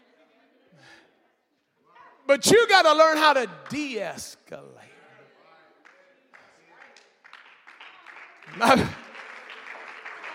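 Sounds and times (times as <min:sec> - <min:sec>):
speech: 0:02.3 - 0:04.9, 0:08.5 - 0:09.0
audience clapping: 0:03.6 - 0:04.2, 0:05.8 - 0:10.3.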